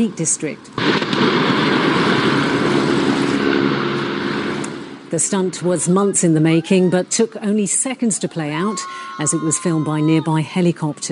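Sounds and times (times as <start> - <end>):
speech: 0.0 - 2.0, 5.1 - 11.0
steam locomotive crashing off the end of the line into a quarry: 0.8 - 6.0.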